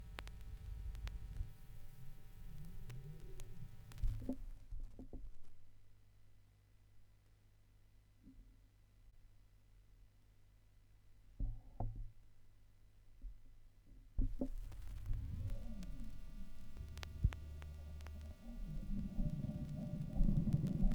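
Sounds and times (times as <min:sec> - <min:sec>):
vinyl record noise: 0:00.0 - 0:04.7, 0:14.3 - 0:20.9.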